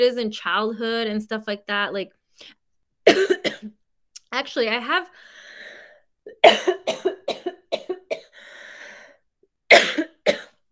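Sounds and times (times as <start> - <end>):
speech: 0.0 - 5.4, 6.4 - 7.1
person coughing: 3.1 - 3.7, 6.3 - 8.4, 9.7 - 10.6
wheezy breath: 5.2 - 6.1, 8.3 - 9.3.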